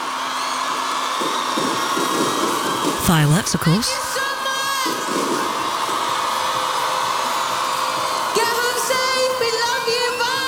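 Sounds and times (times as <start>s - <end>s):
live concert crowd cheering: 0.0s - 10.4s
speech: 3.1s - 4.3s.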